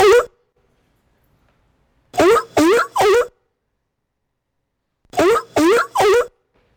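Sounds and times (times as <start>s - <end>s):
seal barking: 0.0s - 0.3s, 2.2s - 3.3s, 5.1s - 6.3s.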